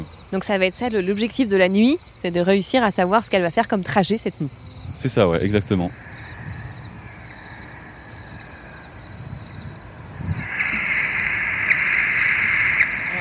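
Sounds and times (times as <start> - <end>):
quiet outdoor noise: 0.0 - 13.2
speech: 0.3 - 6.0
bat detector beeps from an emerging bat: 10.2 - 13.2.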